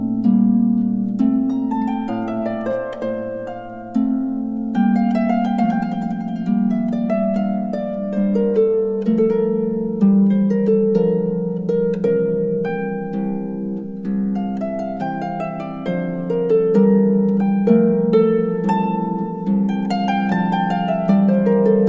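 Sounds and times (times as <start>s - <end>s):
solo harp piece: 0.0s - 21.8s.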